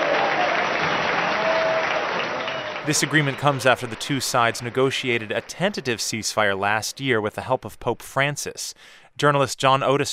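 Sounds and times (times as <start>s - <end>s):
dense, steady clapping from many hands: 0.0s - 6.6s
cheers at the Colombia–FARC ceasefire signing in Cuba: 0.0s - 7.2s
speech: 2.8s - 10.1s.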